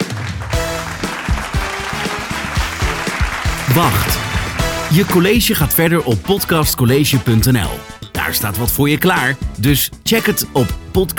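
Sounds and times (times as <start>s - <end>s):
audience applause: 0.0s - 5.6s
speech: 3.7s - 4.3s, 4.9s - 11.1s.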